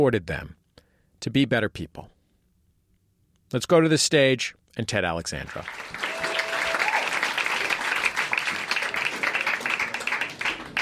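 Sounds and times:
speech: 0.0 - 0.6, 1.2 - 2.2, 3.5 - 6.1
audience clapping: 5.5 - 10.8.

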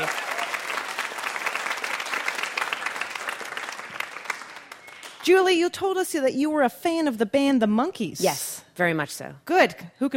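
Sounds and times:
audience applause: 0.0 - 5.3
speech: 5.2 - 10.1.

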